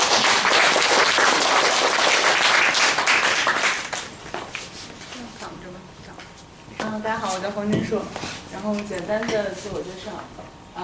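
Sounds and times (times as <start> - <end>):
audience applause: 0.0 - 4.2
speech: 7.3 - 10.8.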